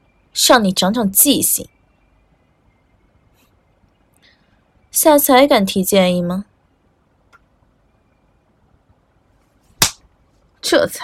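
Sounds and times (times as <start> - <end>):
speech: 0.4 - 1.8, 5.0 - 6.5, 10.6 - 11.0
slap across the face: 9.8 - 10.0.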